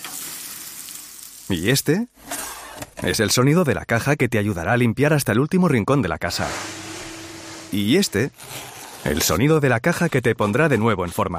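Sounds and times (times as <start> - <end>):
food sizzling on a barbecue grill: 0.0 - 1.5
speech: 1.5 - 2.3, 3.0 - 6.8, 7.7 - 11.3.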